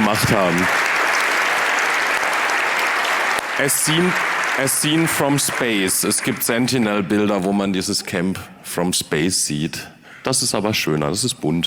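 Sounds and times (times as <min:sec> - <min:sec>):
audience applause: 0:00.0 - 0:07.0
speech: 0:00.1 - 0:00.9, 0:03.6 - 0:11.6.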